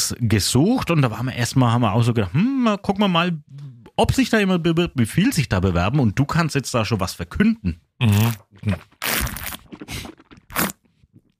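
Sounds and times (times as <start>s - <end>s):
speech: 0.1s - 10.1s
slurping a sip of coffee: 8.0s - 11.3s.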